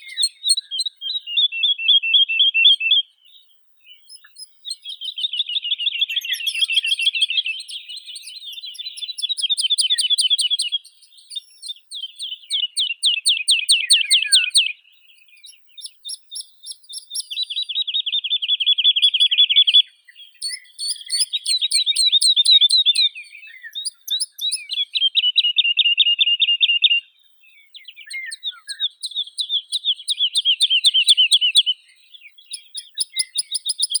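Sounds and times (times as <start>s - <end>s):
woodlark Lullula arborea singing: 0.0s - 33.9s.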